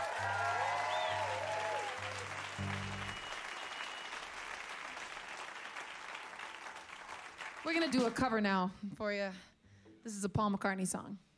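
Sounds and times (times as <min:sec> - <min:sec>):
crowd applause at a live show welcoming a band back to the stage: 0:00.0 - 0:08.2
speech: 0:07.7 - 0:11.3.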